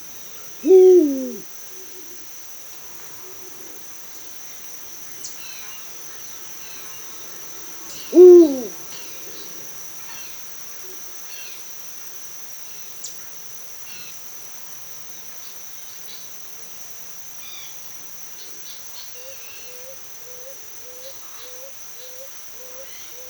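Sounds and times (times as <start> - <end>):
eagle owl hooting at dusk: 0.0 - 2.2, 7.9 - 9.6.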